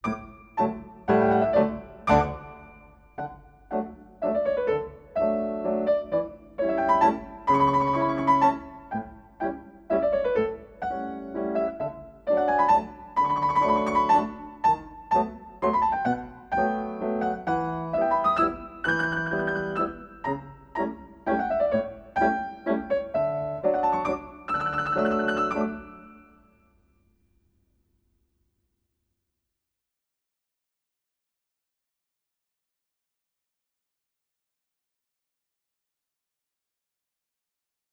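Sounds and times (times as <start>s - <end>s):
classical piano music for ballet échappés, relevés and walks: 0.0s - 26.5s.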